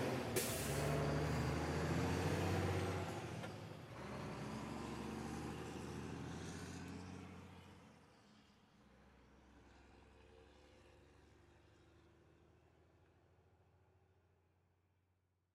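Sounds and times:
Mac E7-460 semi truck starting up, reversing and driving off: 0.0 - 7.8.

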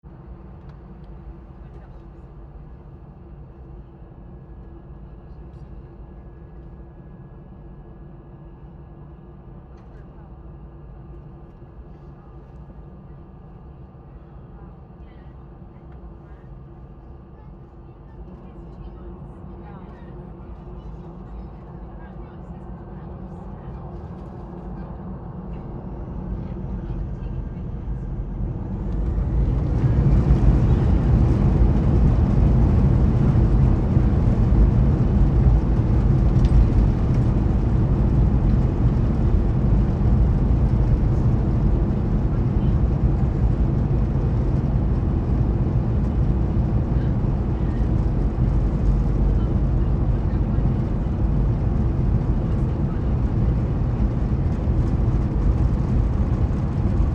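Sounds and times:
Airbus 320 jet engines during take off inside aircraft: 0.1 - 57.1
light crowd murmur: 11.9 - 57.1.

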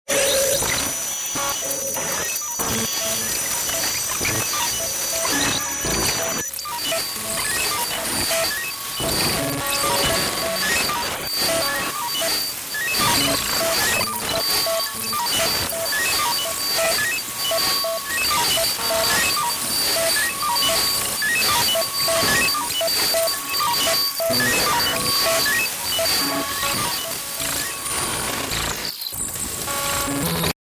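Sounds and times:
sci-fi computer malfunction glitch sequence: 0.1 - 30.5.

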